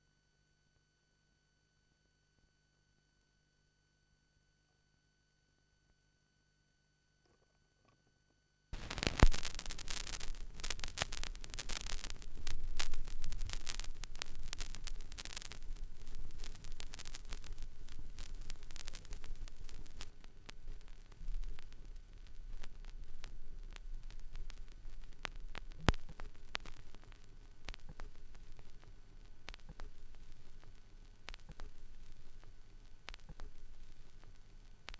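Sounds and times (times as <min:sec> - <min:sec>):
vinyl record noise: 0:08.8 - 0:34.9.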